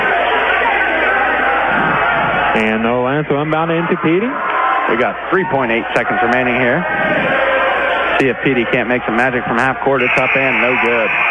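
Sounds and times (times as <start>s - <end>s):
basketball arena crowd cheering and clapping for a substitute: 0.0s - 11.3s
speech: 2.6s - 7.4s, 8.2s - 11.3s.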